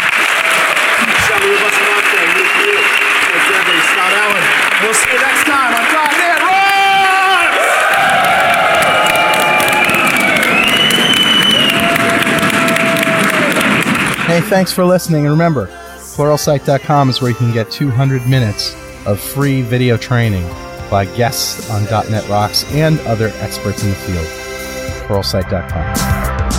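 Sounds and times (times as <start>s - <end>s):
audience round of applause and cheering: 0.0s - 14.8s
speech: 14.5s - 24.4s, 25.1s - 26.2s.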